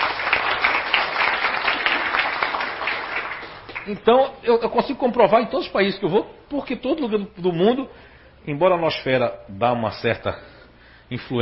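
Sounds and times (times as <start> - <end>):
audience applause: 0.0 - 3.9
speech: 3.9 - 10.5, 11.1 - 11.3.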